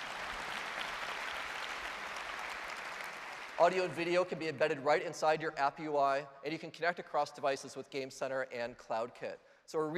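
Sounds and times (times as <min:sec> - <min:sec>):
audience applause: 0:00.0 - 0:04.0
speech: 0:03.6 - 0:09.9.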